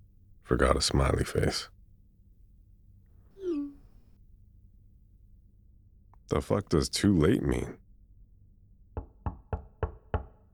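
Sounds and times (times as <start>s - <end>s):
speech: 0.5s - 1.8s, 6.3s - 7.8s
knocking on a door: 9.0s - 10.5s.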